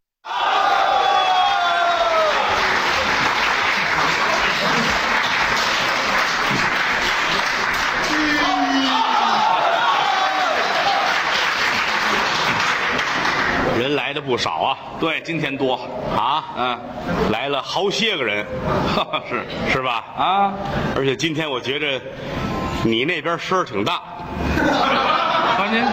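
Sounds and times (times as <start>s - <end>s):
cheers and shouted voices: 0.2s - 3.1s, 7.9s - 11.5s
audience applause: 0.4s - 13.8s
laughter: 2.6s - 6.8s, 18.7s - 19.8s, 24.4s - 25.9s
speech: 14.1s - 25.9s.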